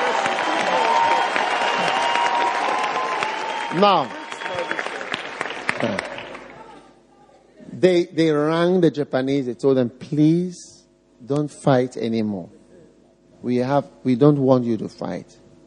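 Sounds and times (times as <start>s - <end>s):
audience clapping: 0.0s - 6.8s
speech: 3.7s - 4.2s, 7.8s - 12.6s, 13.4s - 15.4s.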